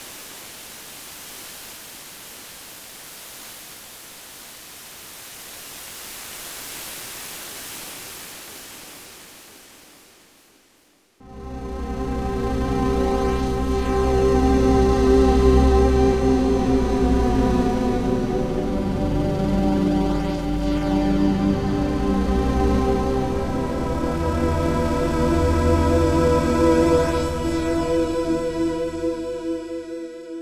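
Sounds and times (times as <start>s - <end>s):
synthesizer sound effects: 11.2s - 30.4s.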